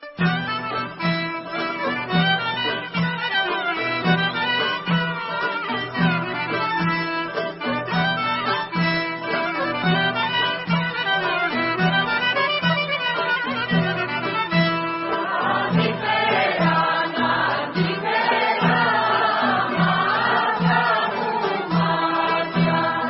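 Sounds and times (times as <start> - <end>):
Greek Vlach folk music: 0.0 - 23.0.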